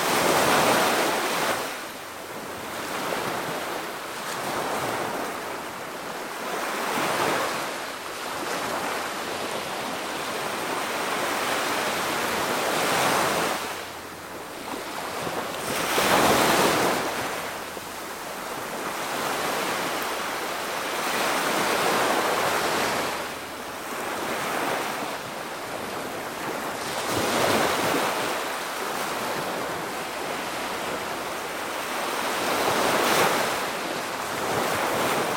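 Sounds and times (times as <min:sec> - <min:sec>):
medium waves in the ocean: 0:00.0 - 0:35.3.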